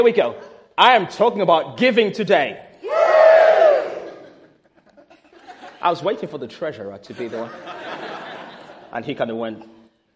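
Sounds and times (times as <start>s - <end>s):
speech: 0.0s - 2.7s, 5.8s - 7.8s, 8.9s - 10.1s
congregation cheering: 2.8s - 4.4s
laughter: 3.9s - 6.3s, 7.1s - 9.2s.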